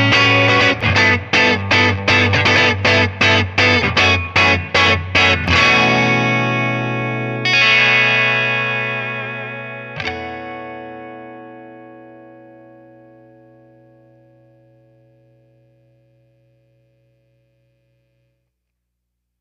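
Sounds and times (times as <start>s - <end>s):
electric guitar neck pickup bright down strum: 0.0s - 15.5s.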